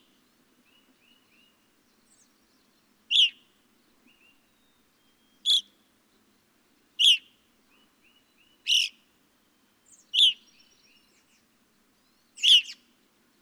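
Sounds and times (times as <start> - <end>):
evening grosbeak chirping calls: 3.1 - 3.4, 5.1 - 5.7, 8.1 - 9.0, 9.9 - 11.0, 12.3 - 12.9.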